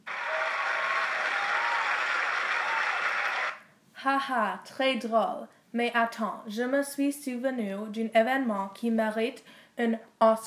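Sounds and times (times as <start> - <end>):
round of applause: 0.0 - 3.6
speech: 4.0 - 10.4.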